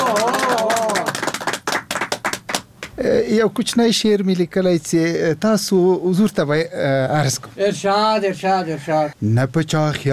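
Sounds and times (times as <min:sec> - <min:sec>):
hand clapping at a poetry gathering: 0:00.0 - 0:03.0
speech: 0:03.0 - 0:10.1.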